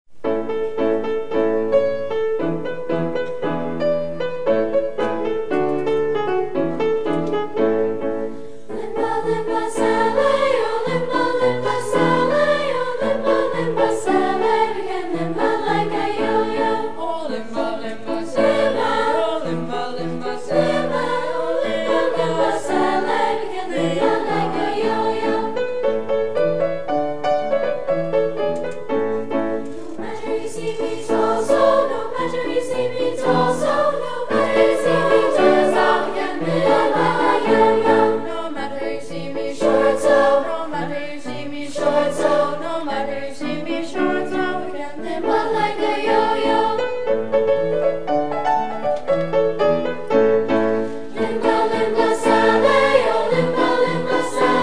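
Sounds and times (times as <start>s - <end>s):
Guyanese folk song: 0.1s - 54.6s.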